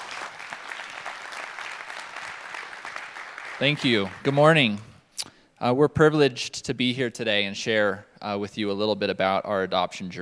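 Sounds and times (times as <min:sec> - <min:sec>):
audience applause welcoming a family onstage at a church gathering: 0:00.0 - 0:04.4
speech: 0:03.6 - 0:04.9, 0:05.6 - 0:10.1.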